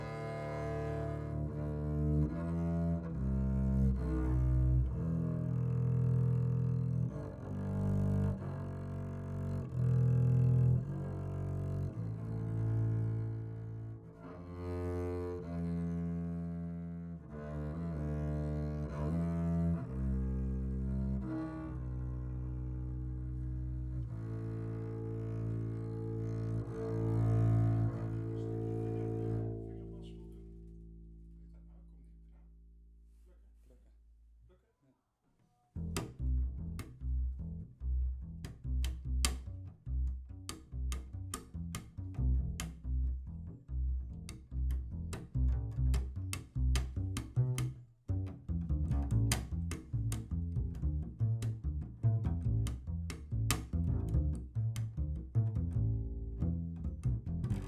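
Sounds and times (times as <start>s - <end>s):
bass recorded through a microphone: 0.0s - 34.5s, 35.8s - 57.6s.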